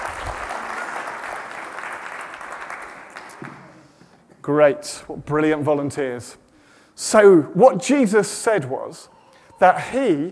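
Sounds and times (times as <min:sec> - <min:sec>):
audience applause: 0:00.0 - 0:03.9
speech: 0:04.5 - 0:06.4, 0:07.0 - 0:10.3.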